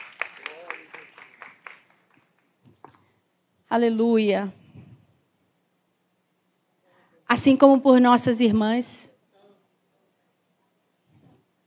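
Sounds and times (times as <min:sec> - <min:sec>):
audience clapping: 0:00.0 - 0:03.0
speech: 0:03.7 - 0:04.6, 0:07.4 - 0:09.1.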